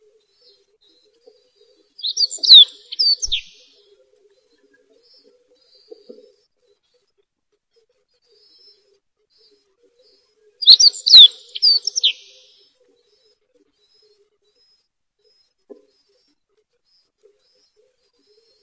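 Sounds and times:
bird song phrase of sharp high chirps and slurred whistle: 2.0s - 3.6s, 10.6s - 12.4s.

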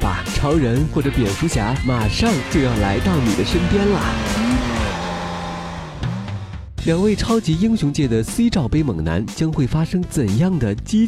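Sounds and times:
speech: 0.4s - 4.7s, 6.8s - 11.0s
sports car engine revving and driving up: 1.8s - 6.7s.

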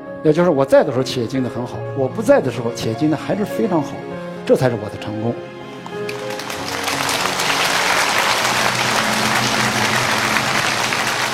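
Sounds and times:
speech: 0.2s - 5.4s
audience applause: 5.7s - 11.3s.

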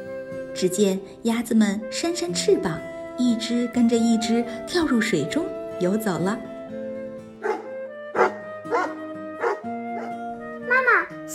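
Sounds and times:
speech: 0.6s - 6.5s
dog barking: 7.4s - 10.2s.

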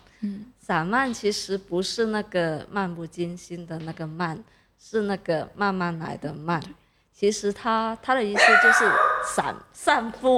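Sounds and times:
speech: 0.2s - 10.3s
excited dog barking: 8.4s - 9.6s.

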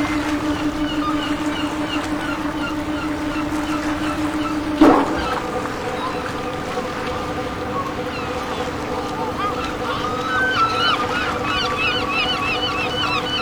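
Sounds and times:
fishing boat engines idling at a dock: 0.0s - 13.4s
seagulls crying: 0.0s - 13.4s
sharp knock: 4.8s - 5.7s.

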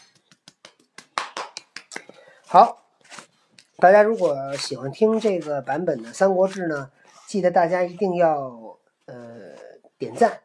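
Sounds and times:
hands clapping: 0.0s - 2.2s
speech: 2.5s - 2.8s, 3.8s - 9.2s, 10.0s - 10.4s.

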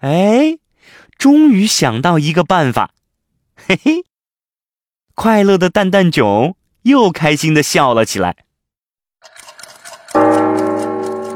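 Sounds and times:
speech: 0.0s - 3.0s, 3.6s - 4.1s, 5.2s - 8.4s
big clock on a snowy mountain striking: 10.2s - 11.3s.

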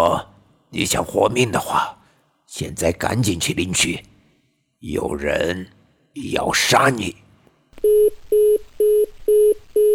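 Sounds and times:
speech: 0.0s - 4.2s, 4.8s - 7.2s, 7.8s - 8.6s
telephone busy tone: 7.8s - 9.9s.

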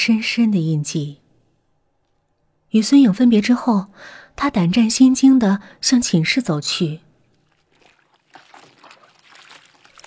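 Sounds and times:
speech: 0.0s - 1.2s, 2.7s - 7.1s
scrubbing clothes in water: 7.2s - 10.0s.

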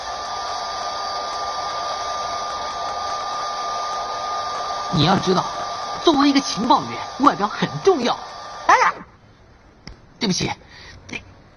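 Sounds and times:
hair dryer blowing: 0.0s - 9.1s
speech: 4.9s - 8.4s, 10.2s - 11.2s.

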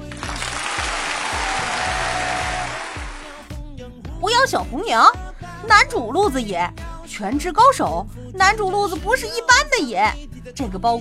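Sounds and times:
crowd clapping: 0.0s - 3.5s
speech: 4.5s - 11.0s.

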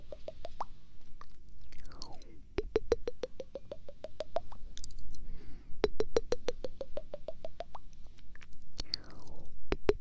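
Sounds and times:
quick 3D popping sounds: 2.0s - 5.0s, 5.8s - 7.8s.

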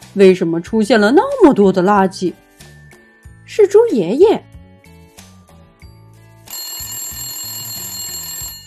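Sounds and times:
speech: 0.2s - 2.4s, 3.5s - 4.5s
phone electronic ringtone: 5.5s - 8.6s.

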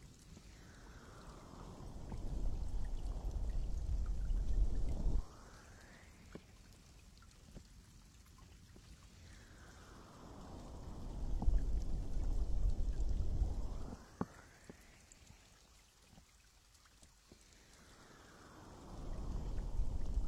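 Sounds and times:
muffled deep-sea underwater sound: 0.4s - 5.6s, 9.4s - 14.2s, 18.8s - 20.2s.

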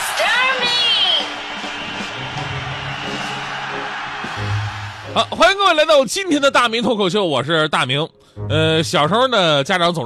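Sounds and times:
audience applause: 0.0s - 5.8s
speech: 5.2s - 10.0s.

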